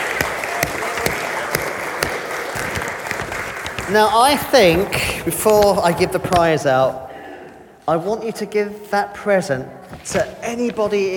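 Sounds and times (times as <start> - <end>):
audience clapping: 0.0 - 6.0
speech: 3.9 - 7.0, 7.9 - 11.1.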